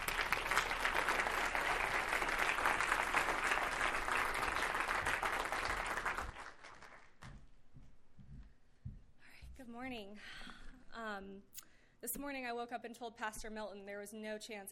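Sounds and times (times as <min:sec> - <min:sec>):
church congregation applauding to welcome a woman speaker at Cornerstone: 0:00.0 - 0:07.3
speech: 0:12.0 - 0:14.7.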